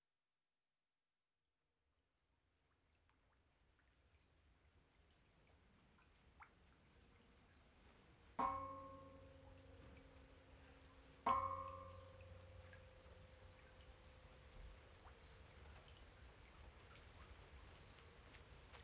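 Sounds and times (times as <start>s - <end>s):
rain at a temple: 8.6s - 18.8s.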